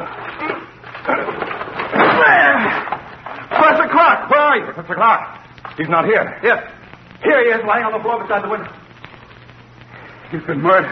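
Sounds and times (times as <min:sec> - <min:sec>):
door being broken down by shoulders: 0:00.0 - 0:04.0
speech: 0:04.6 - 0:08.8, 0:10.3 - 0:10.9.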